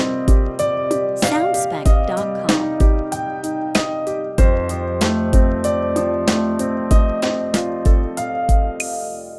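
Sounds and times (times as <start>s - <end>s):
drums: 0.0s - 9.3s
sweet piano loop: 0.0s - 9.3s.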